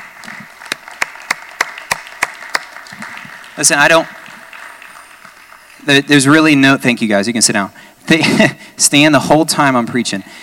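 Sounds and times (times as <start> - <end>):
audience applause: 0.0 - 6.6
sharp evenly spaced rhythmic claps: 0.0 - 6.7
speech: 3.6 - 4.2, 5.9 - 10.4.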